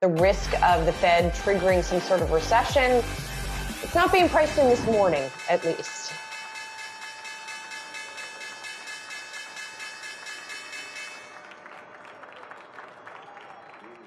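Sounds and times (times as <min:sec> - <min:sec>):
speech: 0:00.0 - 0:06.2
stock exchange opening bell ringing: 0:05.0 - 0:11.4.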